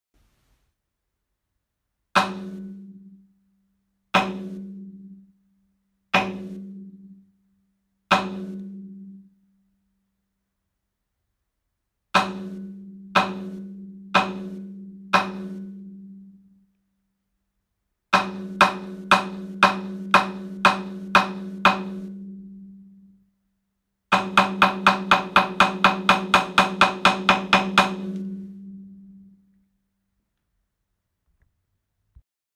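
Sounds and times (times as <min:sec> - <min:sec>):
taiko drums: 0:02.2 - 0:02.7, 0:04.2 - 0:04.6, 0:06.2 - 0:06.6, 0:08.1 - 0:08.6, 0:12.2 - 0:12.6, 0:13.2 - 0:13.6, 0:14.2 - 0:14.6, 0:15.2 - 0:15.6, 0:18.2 - 0:22.1, 0:24.1 - 0:28.4.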